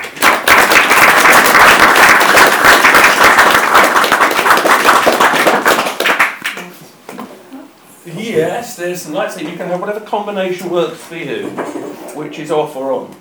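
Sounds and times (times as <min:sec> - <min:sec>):
audience round of applause: 0:00.0 - 0:06.7
speech: 0:08.3 - 0:13.2.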